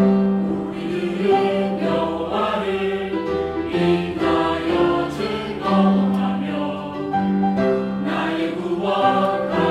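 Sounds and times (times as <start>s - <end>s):
choir singing: 0.2s - 9.6s.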